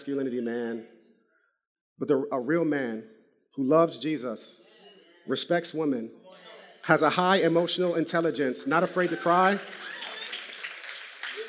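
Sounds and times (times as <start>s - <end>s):
speech: 0.0s - 1.0s, 2.0s - 4.7s, 5.3s - 6.2s, 6.8s - 9.9s
audience clapping: 8.6s - 11.4s.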